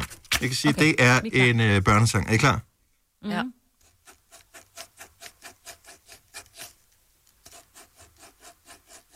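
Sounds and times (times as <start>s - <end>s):
speech: 0.4s - 3.6s
pen rhythmically drawing on paper: 3.8s - 6.8s, 7.4s - 9.1s.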